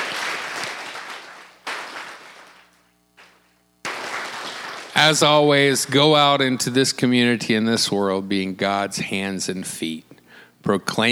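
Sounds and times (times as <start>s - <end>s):
audience clapping: 0.0s - 6.0s
speech: 5.0s - 11.1s.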